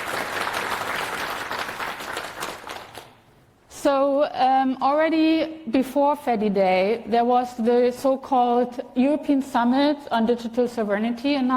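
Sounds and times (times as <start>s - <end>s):
audience applause: 0.0s - 3.1s
speech: 3.8s - 11.5s.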